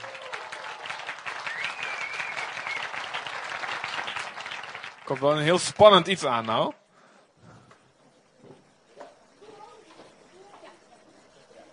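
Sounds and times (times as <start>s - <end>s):
audience applause for children: 0.0s - 6.8s
speech: 5.1s - 6.8s.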